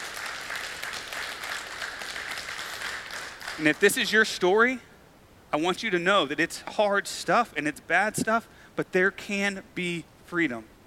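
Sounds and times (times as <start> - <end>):
audience clapping: 0.0 - 4.1
speech: 3.6 - 4.9, 5.5 - 10.7.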